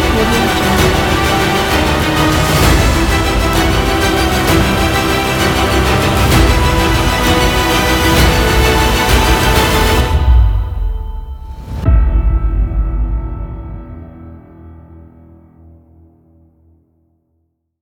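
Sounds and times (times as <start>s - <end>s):
epic military music: 0.0s - 13.6s.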